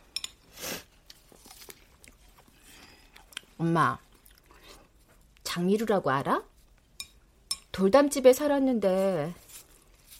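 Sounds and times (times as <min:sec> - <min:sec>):
biting and chewing an apple: 0:01.1 - 0:03.5
speech: 0:03.6 - 0:04.0, 0:05.5 - 0:06.5, 0:07.8 - 0:09.4.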